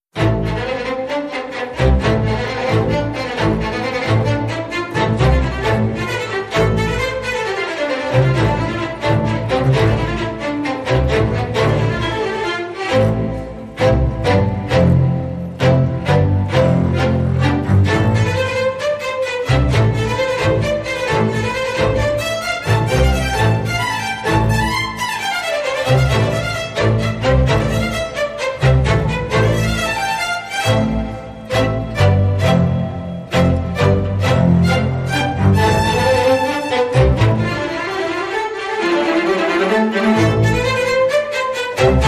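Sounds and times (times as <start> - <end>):
solo strings: 0.1 - 42.0.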